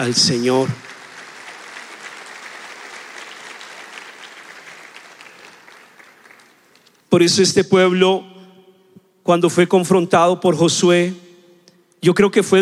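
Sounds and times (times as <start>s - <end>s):
speech: 0.0s - 0.9s, 7.1s - 8.3s, 9.3s - 11.2s, 12.0s - 12.6s
audience applauding: 0.0s - 7.0s.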